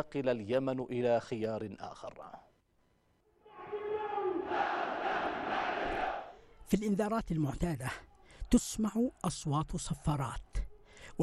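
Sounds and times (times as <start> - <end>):
speech: 0.0 - 2.5, 6.7 - 11.2
huge mass rally crowd chanting in unison: 3.5 - 6.4.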